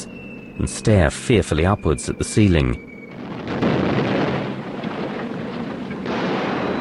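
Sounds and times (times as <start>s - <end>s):
speech: 0.6s - 2.9s
bomb exploding during an air raid: 3.0s - 6.7s.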